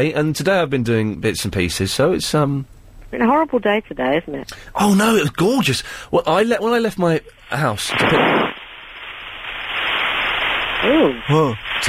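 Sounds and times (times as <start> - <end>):
speech: 0.0 - 8.5, 10.8 - 11.8
heavy rain: 7.5 - 11.8.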